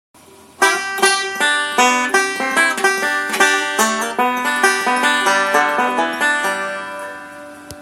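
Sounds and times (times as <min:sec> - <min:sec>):
banjo: 0:00.5 - 0:07.7.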